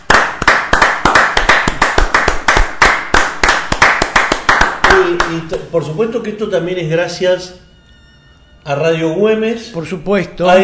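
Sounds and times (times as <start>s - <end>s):
sustained applause with many hands clapping: 0.0s - 5.6s
speech: 5.3s - 7.6s, 8.6s - 10.6s.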